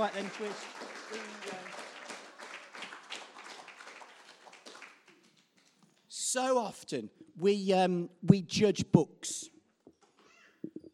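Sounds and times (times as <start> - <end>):
speech: 0.0 - 2.0, 6.3 - 9.5
small round of applause: 0.0 - 6.1.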